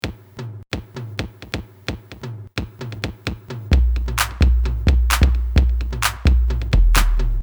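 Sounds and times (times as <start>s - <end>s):
tribal style music: 2.6s - 7.4s.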